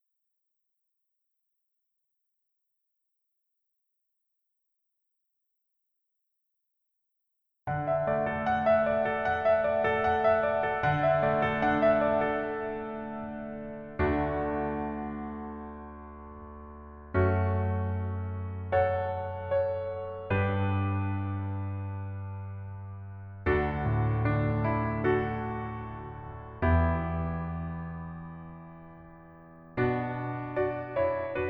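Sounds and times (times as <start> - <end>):
piano music: 7.7 - 31.4.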